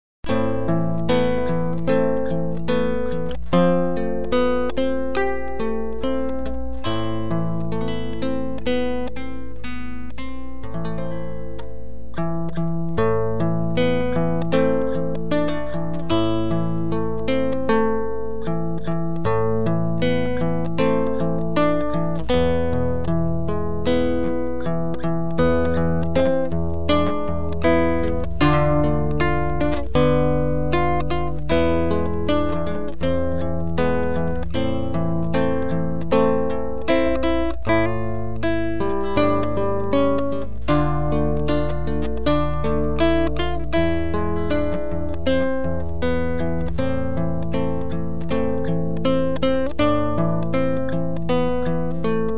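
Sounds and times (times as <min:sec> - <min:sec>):
acoustic guitar version: 0:00.0 - 0:52.3.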